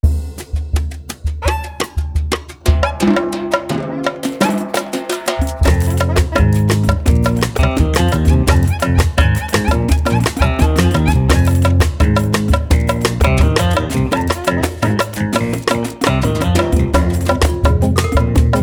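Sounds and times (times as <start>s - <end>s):
silver tamborim: 0.1s - 18.6s.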